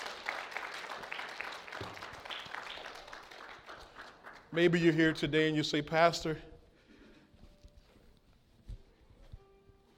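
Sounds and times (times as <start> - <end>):
audience hand clapping in praise: 0.0 - 5.5
speech: 4.5 - 6.5.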